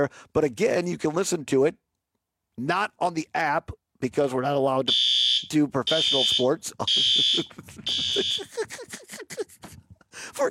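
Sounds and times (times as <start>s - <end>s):
speech: 0.0s - 1.8s, 2.6s - 9.5s, 10.2s - 10.4s
fire alarm going off in studio: 4.9s - 8.5s
laughter: 6.1s - 9.9s.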